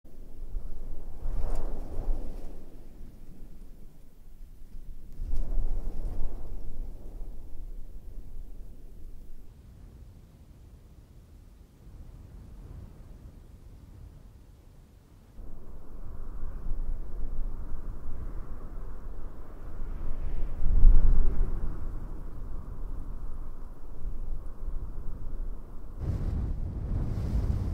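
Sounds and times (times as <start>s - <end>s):
Arabian Desert ambience: 0.1s - 9.5s, 15.4s - 27.6s.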